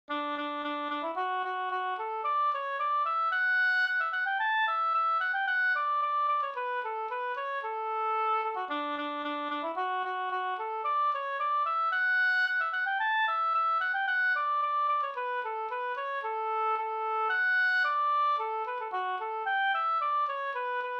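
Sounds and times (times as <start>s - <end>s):
polka music: 0.1s - 20.9s.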